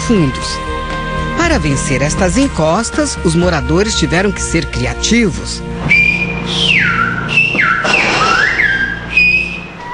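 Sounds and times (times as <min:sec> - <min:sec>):
speech: 0:00.1 - 0:00.6, 0:01.5 - 0:06.7
whistled language conversation: 0:05.9 - 0:09.9.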